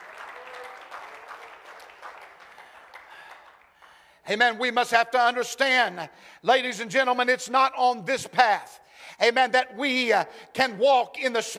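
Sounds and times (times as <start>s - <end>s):
people clapping: 0.0s - 4.1s
speech: 4.3s - 11.5s.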